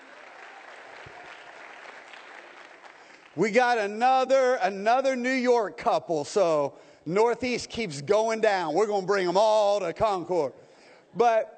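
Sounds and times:
audience applause at a church campus service: 0:00.0 - 0:03.4
speech: 0:03.4 - 0:11.5.

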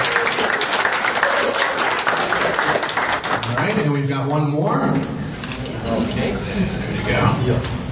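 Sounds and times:
audience applause: 0:00.0 - 0:03.9
speech: 0:04.0 - 0:05.2, 0:05.8 - 0:07.8.

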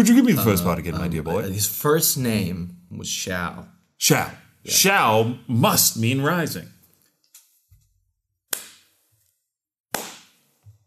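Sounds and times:
speech: 0:00.0 - 0:06.8
hands clapping: 0:08.5 - 0:08.8, 0:09.9 - 0:10.4.

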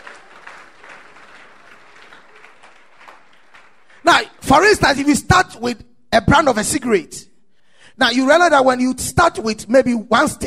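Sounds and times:
audience clapping in praise: 0:00.0 - 0:04.6
speech: 0:04.0 - 0:07.3, 0:08.0 - 0:10.4.

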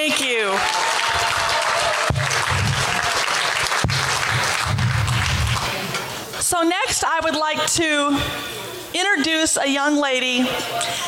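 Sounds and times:
crowd applauding: 0:00.4 - 0:06.2
speech: 0:06.6 - 0:11.0.

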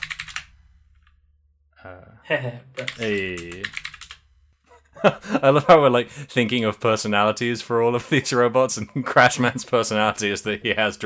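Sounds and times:
keyboard typing: 0:00.0 - 0:01.2, 0:02.8 - 0:04.2
speech: 0:01.8 - 0:03.9, 0:05.0 - 0:11.0
laughter: 0:02.0 - 0:03.6, 0:04.7 - 0:11.0.

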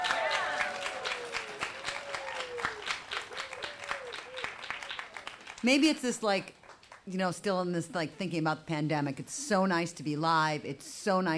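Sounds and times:
scattered whoops: 0:00.0 - 0:05.4
audience clapping: 0:00.0 - 0:07.1
speech: 0:05.6 - 0:11.3.

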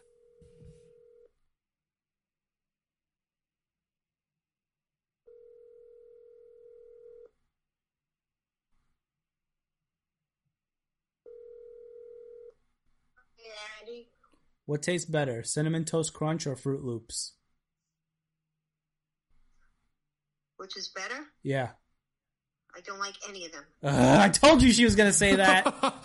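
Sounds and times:
electronic phone ringback tone: 0:05.3 - 0:07.3, 0:11.3 - 0:12.5
speech: 0:13.6 - 0:17.4, 0:20.6 - 0:21.8, 0:22.8 - 0:26.0
laughter: 0:23.9 - 0:26.0.

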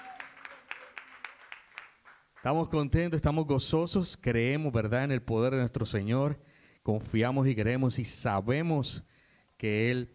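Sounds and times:
audience clapping in rhythm: 0:00.0 - 0:02.8
speech: 0:02.4 - 0:10.1.

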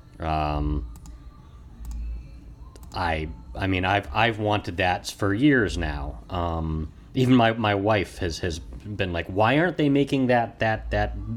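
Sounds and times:
speech: 0:00.2 - 0:01.0, 0:02.9 - 0:11.3
computer mouse double clicks: 0:00.9 - 0:01.2, 0:01.8 - 0:02.1, 0:02.7 - 0:03.0.

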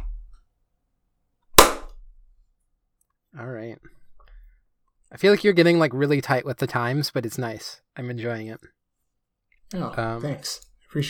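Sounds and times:
single sharp hand clap: 0:01.6 - 0:01.9
speech: 0:03.4 - 0:04.0, 0:05.1 - 0:08.8, 0:09.7 - 0:11.0.

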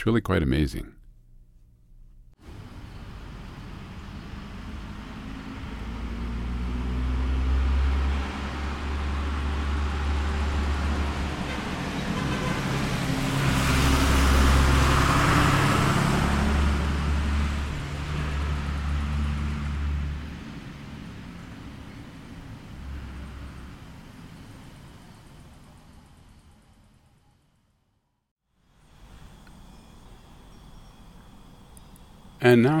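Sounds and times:
speech: 0:00.0 - 0:01.0, 0:32.4 - 0:32.7
UPS truck passing: 0:02.4 - 0:27.4, 0:28.7 - 0:32.7
UPS truck horn honking: 0:11.3 - 0:13.5.

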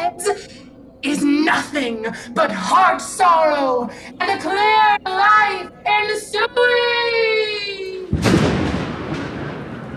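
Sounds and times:
sustained tone: 0:00.0 - 0:08.1
speech: 0:01.5 - 0:07.6
thunder crack and rumble: 0:08.1 - 0:09.9.

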